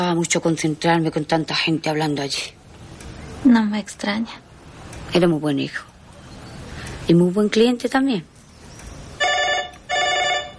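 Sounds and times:
speech: 0.0 - 2.6, 3.4 - 4.4, 5.1 - 5.9, 7.1 - 8.3
telephone bell ringing: 9.2 - 10.5.

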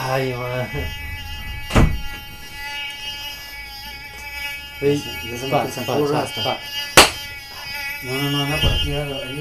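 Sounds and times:
speech: 0.1 - 1.0, 4.8 - 6.9, 8.0 - 9.3
door or screen shut quickly to keep mosquitoes out: 1.7 - 2.2, 8.5 - 9.1.

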